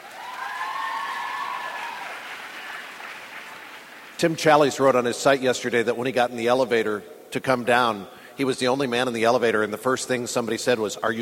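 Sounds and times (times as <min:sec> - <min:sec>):
audience clapping hands: 0:00.0 - 0:04.7
speech: 0:04.2 - 0:11.1.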